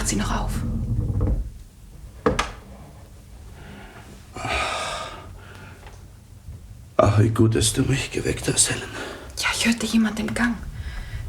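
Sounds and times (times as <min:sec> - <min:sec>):
door to a mother's room swinging shut: 0:00.0 - 0:02.7
quiet low rumbling background: 0:00.0 - 0:11.2
speech: 0:00.1 - 0:00.8, 0:07.2 - 0:10.7.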